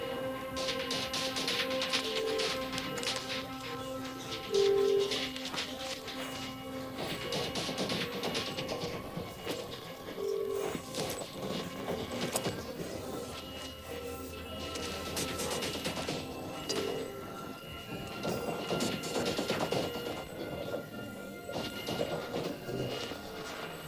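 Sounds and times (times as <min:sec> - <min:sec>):
tense racing against time music: 0:00.0 - 0:23.8.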